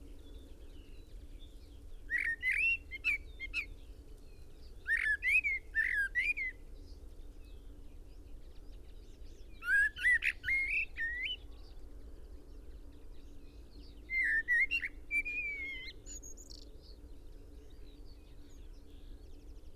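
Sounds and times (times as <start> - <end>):
common blackbird singing: 2.1 - 3.7, 4.8 - 6.6, 9.3 - 11.5, 13.2 - 16.7.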